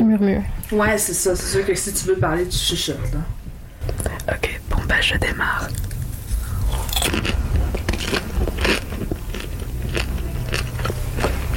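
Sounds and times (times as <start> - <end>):
speech: 0.2 - 3.4, 4.0 - 5.9
person eating popcorn in crunchy bites: 5.4 - 11.5.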